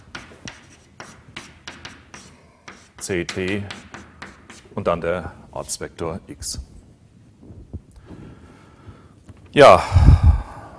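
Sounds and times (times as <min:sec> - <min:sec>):
marker or chalk writing on a board during a physics lecture: 0:00.0 - 0:04.8
speech: 0:03.1 - 0:03.9, 0:04.8 - 0:06.7, 0:09.5 - 0:10.3.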